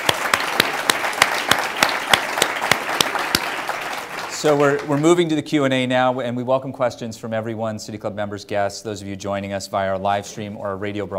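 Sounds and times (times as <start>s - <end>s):
audience applause: 0.0s - 5.3s
speech: 4.4s - 11.1s.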